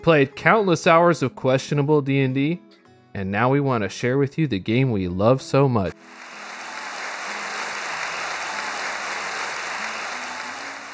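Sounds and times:
speech: 0.0s - 6.2s
applause sound effect: 6.0s - 10.9s.

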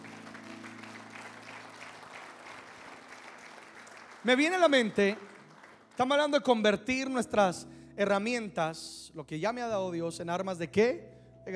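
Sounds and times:
audience applauding: 0.0s - 6.5s
speech: 4.2s - 5.3s, 6.0s - 11.5s.

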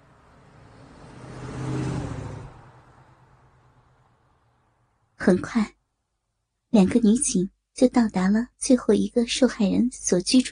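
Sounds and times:
car engine accelerating as the driver presses the gas: 0.0s - 4.8s
speech: 5.2s - 5.8s, 6.8s - 10.4s.

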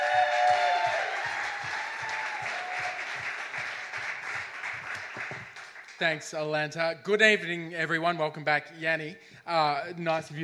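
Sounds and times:
cheers and whoops: 0.0s - 3.2s
crowd applauding: 0.0s - 6.1s
speech: 6.0s - 10.4s.

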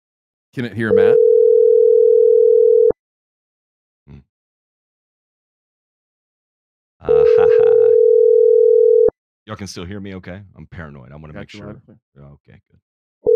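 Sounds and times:
speech: 0.5s - 1.3s, 9.5s - 12.9s
telephone dial tone while calling: 1.2s - 3.0s, 7.7s - 9.1s
laughter: 7.0s - 8.0s.

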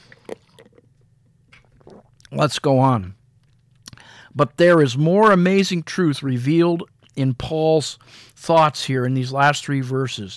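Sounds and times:
person sipping water: 0.0s - 2.4s, 3.7s - 4.2s
speech: 2.3s - 3.2s, 4.4s - 10.3s.

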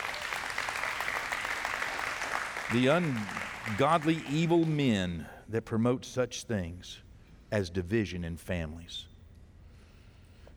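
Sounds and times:
audience clapping: 0.0s - 5.2s
speech: 2.7s - 9.1s.

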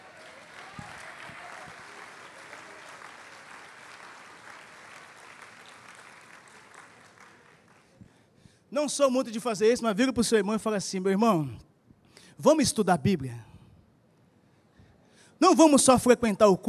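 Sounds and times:
audience applause: 0.0s - 8.0s
speech: 8.7s - 11.6s, 12.4s - 13.5s, 15.4s - 16.6s.

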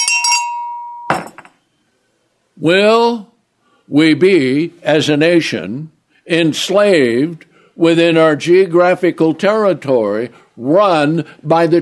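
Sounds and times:
bell ringing as signal or alarm: 0.0s - 1.5s
speech: 2.6s - 3.3s, 3.9s - 11.7s.

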